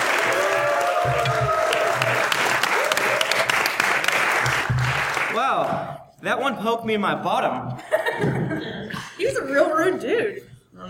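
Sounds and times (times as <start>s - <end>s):
audience applause for a group of performers: 0.0s - 5.9s
speech: 5.5s - 10.8s.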